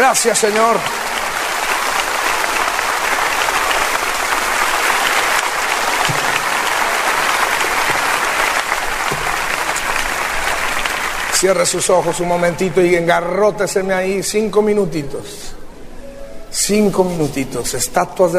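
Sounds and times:
speech: 0:00.0 - 0:01.1, 0:11.4 - 0:15.6, 0:16.6 - 0:18.3
audience applause: 0:00.0 - 0:12.7.

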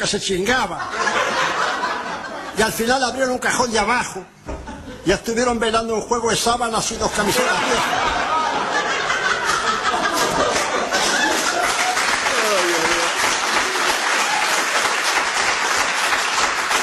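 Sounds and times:
speech: 0:00.0 - 0:01.3, 0:02.6 - 0:04.4, 0:05.0 - 0:08.3
laughter: 0:00.8 - 0:02.6, 0:04.5 - 0:05.1, 0:07.1 - 0:12.0
audience applause: 0:09.2 - 0:16.8.

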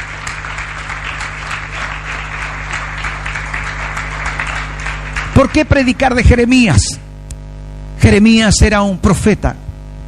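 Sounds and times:
audience applause: 0:00.0 - 0:06.1
speech: 0:05.4 - 0:07.0, 0:08.0 - 0:09.6.

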